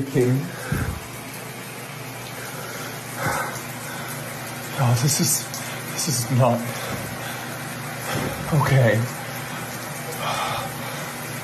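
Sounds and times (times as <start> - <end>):
speech: 0.0 - 0.6, 4.8 - 7.0, 8.5 - 9.2
shower running: 0.0 - 11.4.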